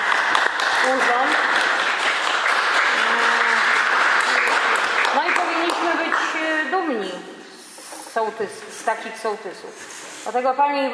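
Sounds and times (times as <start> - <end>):
applause: 0.0 - 6.9
speech: 0.8 - 1.2, 8.2 - 10.9.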